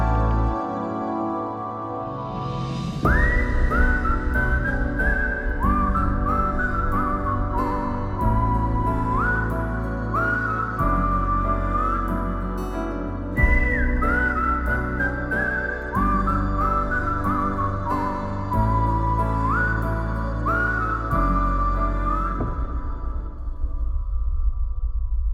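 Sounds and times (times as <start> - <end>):
emotional whistle: 0.0 - 25.2.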